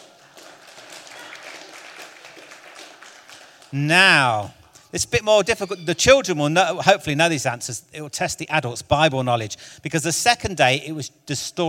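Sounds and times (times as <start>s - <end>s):
audience clapping: 0.0s - 4.9s
speech: 3.7s - 11.6s.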